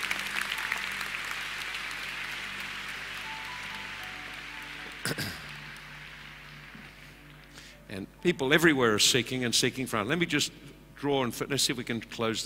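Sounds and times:
audience clapping: 0:00.0 - 0:07.7
speech: 0:05.1 - 0:05.3, 0:07.9 - 0:12.4.

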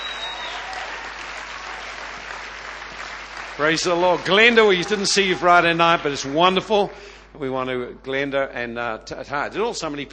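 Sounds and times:
audience applauding: 0:00.0 - 0:06.9
speech: 0:03.6 - 0:10.1.

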